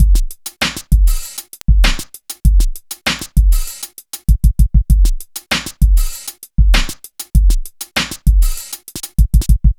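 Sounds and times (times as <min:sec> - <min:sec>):
downtempo beats: 0:00.0 - 0:09.7.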